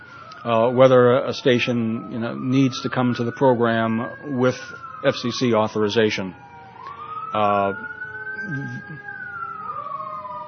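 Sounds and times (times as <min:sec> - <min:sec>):
ambulance or fire engine siren passing: 0:00.0 - 0:10.4
speech: 0:00.4 - 0:06.5, 0:07.3 - 0:09.1.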